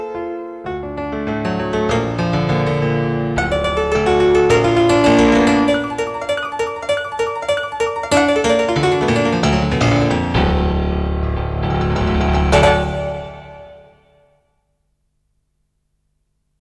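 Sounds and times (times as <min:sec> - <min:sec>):
Yamaha SY85 synthesizer: 0:01.3 - 0:14.2.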